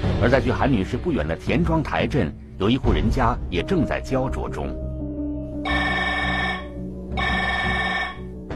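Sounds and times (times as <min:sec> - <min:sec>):
speech: 0:00.2 - 0:04.8
telephone ringing: 0:05.6 - 0:08.4.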